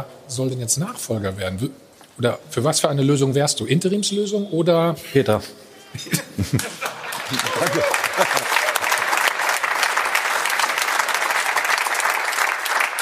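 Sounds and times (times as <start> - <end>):
speech: 0.0 - 8.6
laughter: 5.9 - 9.0
applause: 6.8 - 12.9.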